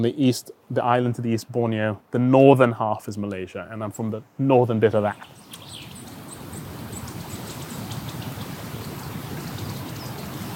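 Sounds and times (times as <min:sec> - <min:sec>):
speech: 0:00.0 - 0:05.4
wind: 0:00.0 - 0:10.5.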